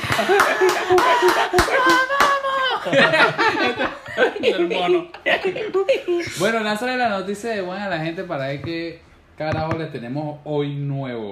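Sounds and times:
rhythmic hand claps: 0:00.0 - 0:02.6
people laughing: 0:00.0 - 0:06.4
speech: 0:00.2 - 0:02.0, 0:02.8 - 0:11.3.

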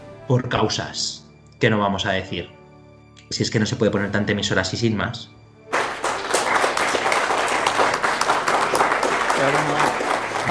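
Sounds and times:
speech: 0:00.3 - 0:02.6, 0:03.3 - 0:05.4, 0:09.4 - 0:10.5
applause: 0:05.7 - 0:10.5.

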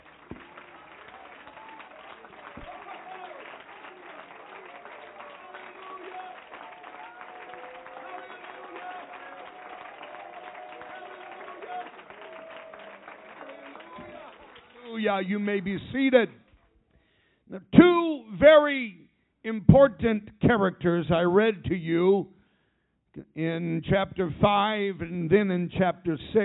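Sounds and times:
voices calling out and cheering: 0:00.0 - 0:16.3
crowd clapping hands: 0:00.0 - 0:16.5
speech: 0:15.0 - 0:16.4, 0:18.6 - 0:22.4, 0:23.2 - 0:26.4.

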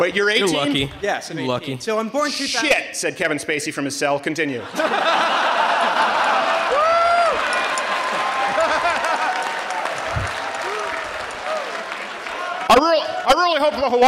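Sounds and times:
laughter: 0:00.0 - 0:01.7, 0:04.5 - 0:11.0
speech: 0:00.0 - 0:06.4, 0:12.7 - 0:14.0
audience clapping: 0:05.8 - 0:13.6.

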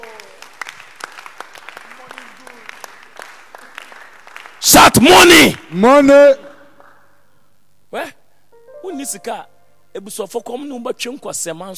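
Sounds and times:
audience clapping hands: 0:00.0 - 0:05.0, 0:06.5 - 0:07.2
speech: 0:04.6 - 0:06.4, 0:09.0 - 0:11.7.

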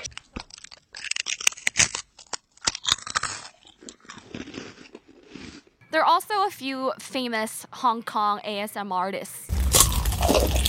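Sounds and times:
food being bitten and chewed: 0:00.0 - 0:05.8, 0:09.5 - 0:10.6
speech: 0:05.9 - 0:09.4.

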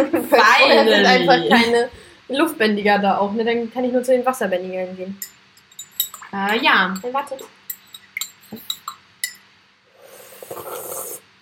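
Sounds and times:
laughter: 0:00.0 - 0:01.9
speech: 0:00.0 - 0:05.4, 0:06.3 - 0:07.6
spoon clinking in a tea cup: 0:05.2 - 0:07.1, 0:07.7 - 0:09.5
spoon stirring in a tea cup: 0:05.2 - 0:09.4.

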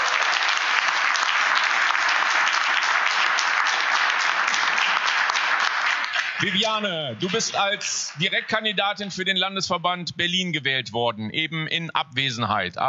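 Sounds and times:
crowd applause: 0:00.0 - 0:08.8
speech: 0:06.4 - 0:12.8.

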